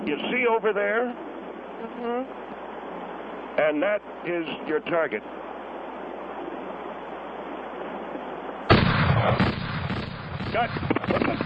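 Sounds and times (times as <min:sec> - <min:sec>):
speech: 0:00.0 - 0:02.6, 0:03.6 - 0:05.4, 0:09.2 - 0:09.5, 0:10.5 - 0:11.4
gunshot during target practice: 0:08.7 - 0:11.4.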